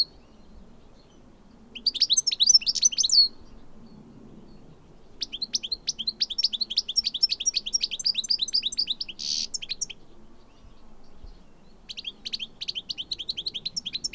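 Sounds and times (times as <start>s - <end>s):
goldfinch Carduelis carduelis singing: 1.8s - 3.4s, 5.2s - 14.1s.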